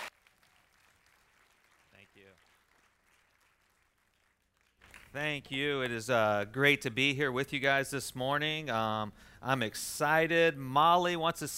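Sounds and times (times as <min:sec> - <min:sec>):
church congregation applauding a guest missionary speaker at Victory Church Lakeside Village: 0:00.0 - 0:05.2
speech: 0:05.1 - 0:11.5.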